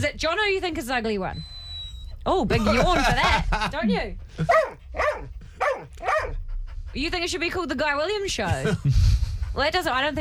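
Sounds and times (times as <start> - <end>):
speech: 0.0 - 1.5, 2.2 - 10.1
dog barking: 4.5 - 6.4.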